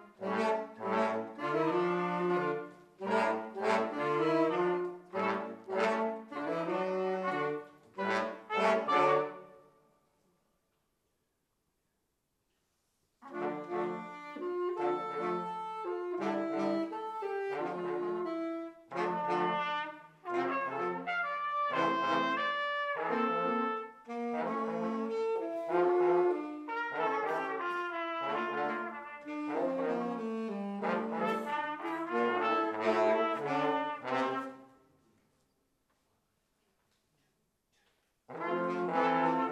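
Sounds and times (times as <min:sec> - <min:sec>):
junior brass ensemble playing variations on a folk song: 0:00.0 - 0:09.6, 0:13.2 - 0:34.8, 0:38.3 - 0:39.4.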